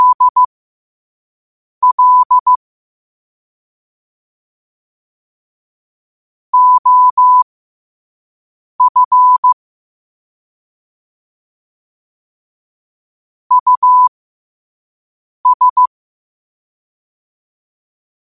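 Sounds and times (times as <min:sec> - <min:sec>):
morse code at 5 wpm: 0:00.0 - 0:00.5, 0:01.8 - 0:02.5, 0:06.6 - 0:07.4, 0:13.5 - 0:14.1, 0:15.4 - 0:15.9.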